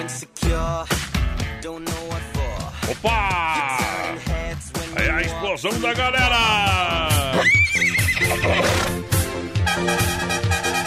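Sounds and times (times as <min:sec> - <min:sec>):
rhythmic music with thumping beat: 0:00.0 - 0:10.8
speech: 0:00.1 - 0:01.0, 0:02.9 - 0:03.8, 0:05.1 - 0:09.1
novelty horn blaring a horse whinny: 0:07.1 - 0:10.8.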